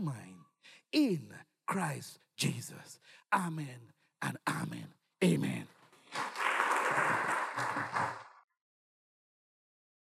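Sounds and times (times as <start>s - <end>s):
speech: 0.0s - 6.3s
audience clapping: 6.0s - 8.4s.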